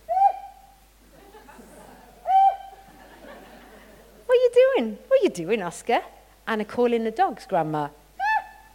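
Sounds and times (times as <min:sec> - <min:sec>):
laughter: 0:01.1 - 0:04.3
person whistling: 0:02.2 - 0:02.8
speech: 0:04.8 - 0:08.0.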